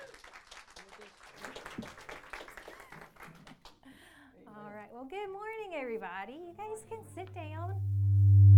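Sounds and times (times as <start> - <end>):
audience applause: 0.0 - 4.0
speech: 6.0 - 7.9.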